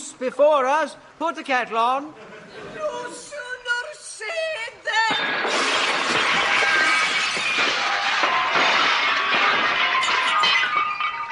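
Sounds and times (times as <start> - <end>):
speech: 0.2 - 3.5
greenhouse glass shattering from a fall: 5.1 - 11.3.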